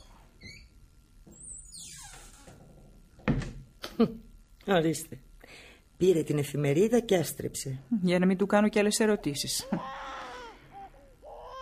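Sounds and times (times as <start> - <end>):
speech: 4.0 - 5.3, 6.0 - 10.2
baby crying at home: 9.2 - 11.6.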